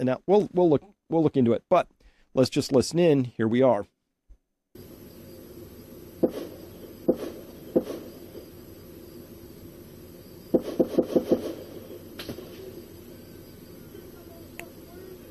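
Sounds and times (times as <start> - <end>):
speech: 0.0 - 4.0
gunshots on a muffled recording: 6.2 - 8.5, 10.5 - 12.8.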